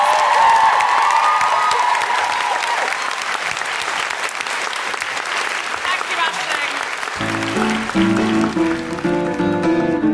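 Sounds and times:
audience applause: 0.0s - 10.0s.

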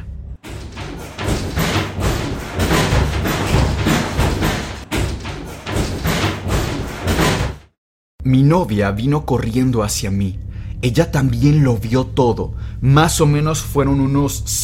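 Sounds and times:
doors slamming shut by themselves: 0.4s - 7.8s
speech: 8.2s - 14.6s.

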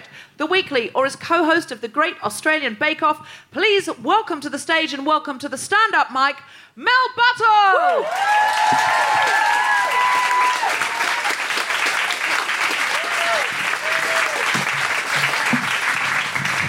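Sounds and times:
speech: 0.4s - 9.6s
audience whoops and cheers: 7.6s - 16.6s
audience applause: 7.8s - 16.6s.

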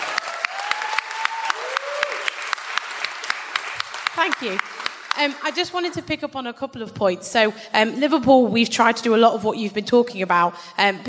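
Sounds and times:
audience applause: 0.0s - 6.0s
speech: 4.2s - 11.0s.

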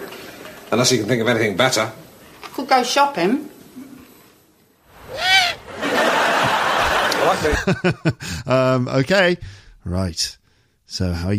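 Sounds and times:
steady broadband hiss: 0.0s - 11.3s
speech: 0.7s - 2.0s, 2.6s - 3.6s, 7.3s - 11.3s
owl hooting: 5.0s - 5.8s
laughter: 5.1s - 8.4s.

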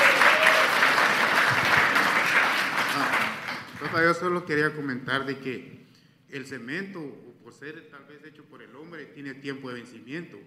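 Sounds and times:
audience applauding: 0.0s - 4.0s
speech: 4.0s - 10.4s.

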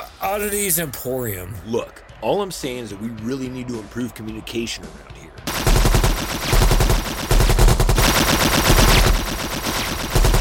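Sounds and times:
speech: 0.3s - 5.4s
automatic gunfire: 5.5s - 10.3s.

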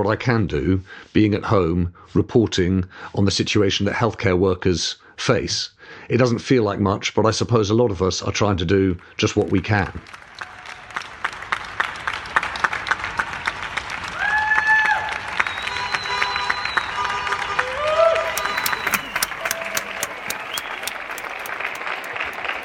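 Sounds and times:
speech: 0.0s - 10.2s
applause for NHS health workers: 9.2s - 22.6s.

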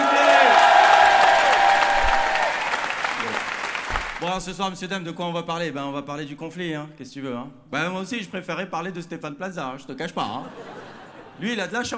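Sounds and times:
audience applause: 0.0s - 4.3s
speech: 4.4s - 10.8s, 11.4s - 11.9s
laughter: 10.2s - 11.9s.

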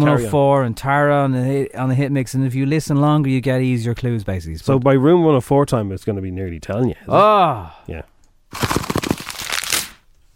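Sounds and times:
speech: 0.0s - 8.9s
Christmas cracker being opened: 8.5s - 10.0s.

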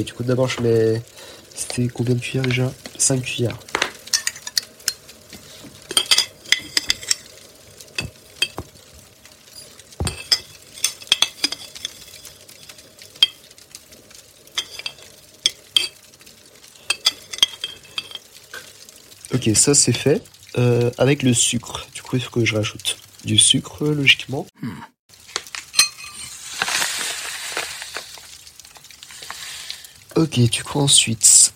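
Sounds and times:
speech: 0.0s - 3.7s, 19.4s - 24.9s, 30.2s - 31.5s
whisking instant coffee with very hot water: 4.1s - 13.6s, 14.5s - 16.1s, 16.8s - 18.7s, 25.6s - 28.4s.

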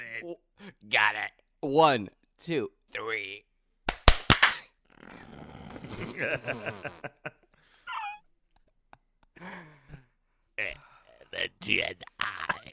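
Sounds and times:
speech: 0.2s - 3.5s, 5.0s - 7.4s, 10.6s - 12.7s
group clapping on count: 3.9s - 4.6s.

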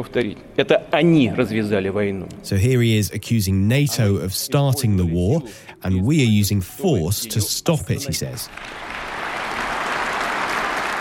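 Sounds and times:
speech: 0.0s - 9.0s
delegates applauding in an indoor hall: 8.5s - 10.9s.

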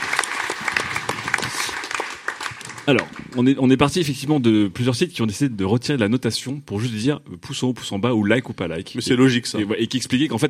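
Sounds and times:
audience applause: 0.0s - 3.6s
speech: 2.9s - 10.4s.

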